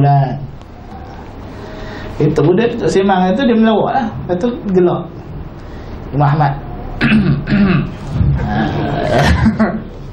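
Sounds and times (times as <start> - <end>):
speech: 0.0 - 0.6, 2.2 - 5.3, 6.1 - 9.9
person imitating a seated person clearing their throat: 7.0 - 9.9.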